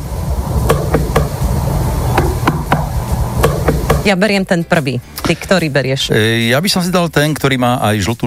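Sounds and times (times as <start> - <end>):
knocking on a watermelon: 0.7 - 1.4, 2.2 - 4.1
speech: 4.0 - 8.2.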